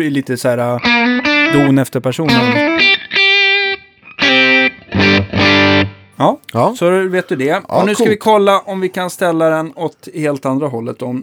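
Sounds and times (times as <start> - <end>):
speech: 0.0 - 3.1, 6.2 - 11.2
electric guitar played through a compressor pedal: 0.8 - 6.2.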